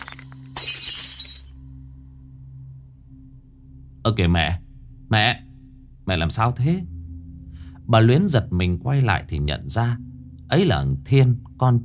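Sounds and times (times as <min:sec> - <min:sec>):
bowl falling and shattering on floor: 0:00.0 - 0:01.6
speech: 0:04.0 - 0:05.5, 0:06.1 - 0:07.0, 0:07.9 - 0:11.8.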